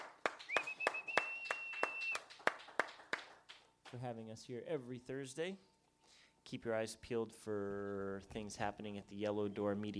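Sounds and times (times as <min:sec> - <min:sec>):
sparse audience clapping at a courtyard art gallery event: 0:00.0 - 0:04.2
long sustained whistle-like tone: 0:00.5 - 0:02.2
speech: 0:03.9 - 0:05.8, 0:06.5 - 0:09.9.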